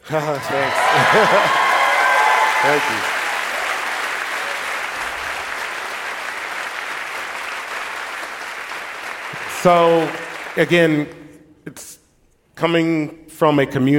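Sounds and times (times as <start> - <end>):
speech: 0.1 - 1.6, 2.6 - 3.2, 9.6 - 12.0, 12.6 - 13.9
audience applause: 0.1 - 10.9
laughter: 0.4 - 3.1.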